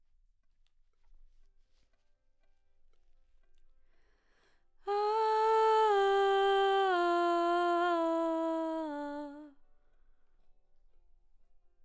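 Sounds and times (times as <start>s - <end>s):
background vocals: 4.9s - 9.5s.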